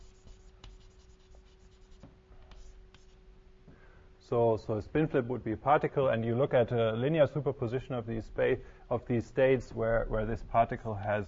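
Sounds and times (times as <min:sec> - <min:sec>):
diagram being drawn by hand with scratching strokes: 0:00.0 - 0:03.2
speech: 0:04.3 - 0:11.2.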